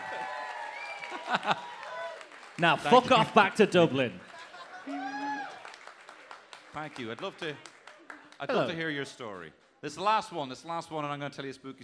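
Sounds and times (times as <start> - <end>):
audience whooping: 0.0 - 2.3, 4.9 - 5.8
audience applause: 0.0 - 8.8
speech: 1.2 - 1.7, 2.6 - 4.3, 6.8 - 7.7, 8.4 - 11.8.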